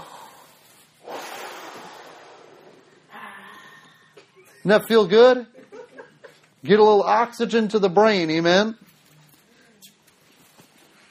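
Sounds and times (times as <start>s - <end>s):
group at a church service breathing deeply in and out: 0.0s - 4.3s
speech: 4.6s - 5.6s, 6.6s - 8.8s.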